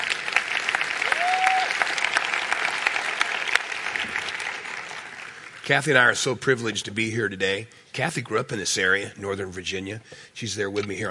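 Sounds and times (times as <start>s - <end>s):
audience applause: 0.0s - 5.9s
speech: 5.7s - 11.1s.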